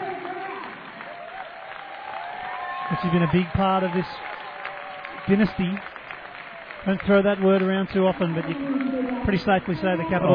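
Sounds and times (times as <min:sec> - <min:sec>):
stadium crowd clapping and cheering in a standing ovation: 0:00.0 - 0:10.3
speech: 0:02.9 - 0:04.3, 0:05.3 - 0:05.9, 0:06.8 - 0:10.3.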